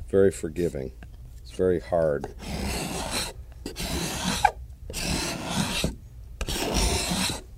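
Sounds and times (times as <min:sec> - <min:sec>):
speech: 0:00.1 - 0:02.7
hand scraper smoothing rosewood: 0:02.2 - 0:07.4.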